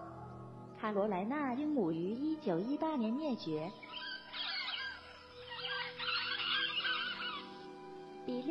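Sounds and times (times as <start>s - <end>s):
speech: 0.8s - 4.1s, 8.3s - 8.4s
Falkland Islands wolf call: 3.9s - 7.7s.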